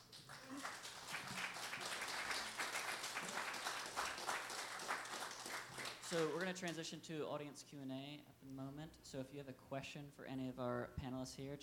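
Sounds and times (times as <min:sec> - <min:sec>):
audience applause for a panel of speakers at a live event: 0:00.0 - 0:06.8
speech: 0:06.1 - 0:11.6.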